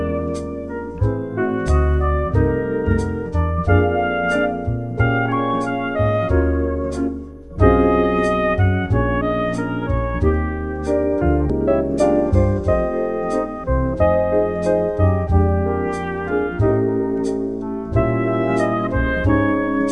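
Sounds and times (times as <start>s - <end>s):
christmas jazz music: 0.0s - 19.8s.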